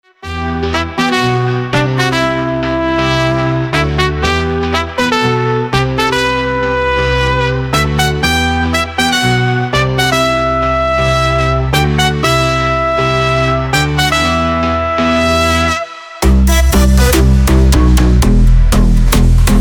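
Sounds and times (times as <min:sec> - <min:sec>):
tuba: 0:00.2 - 0:19.5
future house and future garage beat: 0:15.8 - 0:19.5.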